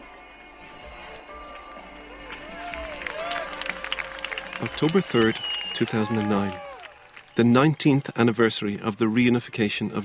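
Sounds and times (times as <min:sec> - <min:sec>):
huge open-air crowd clapping: 0:01.4 - 0:10.0
people shouting: 0:02.3 - 0:05.2, 0:05.8 - 0:07.0
whistles: 0:02.7 - 0:07.7
speech: 0:04.6 - 0:06.6, 0:07.4 - 0:10.0.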